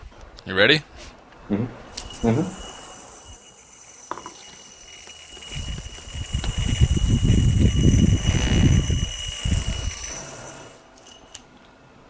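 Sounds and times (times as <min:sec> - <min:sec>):
faint high-pitched whine: 0:00.0 - 0:12.0
yo-yo thrown with sharp clicks and knocks: 0:01.9 - 0:11.5.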